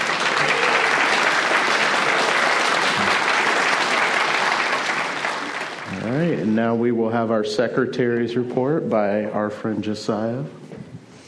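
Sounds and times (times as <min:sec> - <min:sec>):
audience applause: 0:00.0 - 0:06.5
speech: 0:06.6 - 0:10.6.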